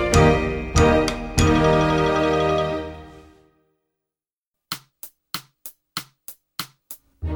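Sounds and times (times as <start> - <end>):
percussion: 0.0 - 3.0, 4.7 - 7.2.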